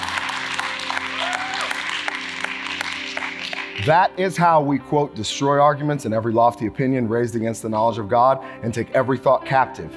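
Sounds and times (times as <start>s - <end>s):
audience hand clapping: 0.0s - 4.0s
speech: 3.8s - 9.9s.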